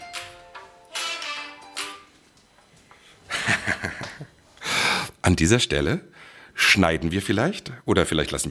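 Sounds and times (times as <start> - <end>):
mobile phone ringing: 0.0 - 2.2
laughter: 3.3 - 4.3
speech: 5.2 - 8.4.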